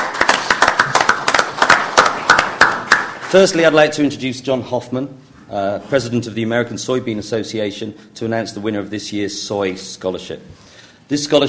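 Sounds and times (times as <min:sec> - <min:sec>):
small group clapping for scholarship winners at an American Soybean Association award presentation: 0:00.0 - 0:03.3
speech: 0:03.3 - 0:11.4.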